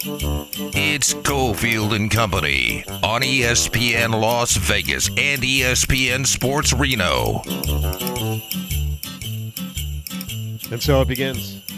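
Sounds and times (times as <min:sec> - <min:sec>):
speech: 0:00.0 - 0:08.8, 0:10.7 - 0:11.6
Christmas bells jingling: 0:00.0 - 0:11.7
bouncy instrumental tune with thumping bass: 0:00.0 - 0:11.7.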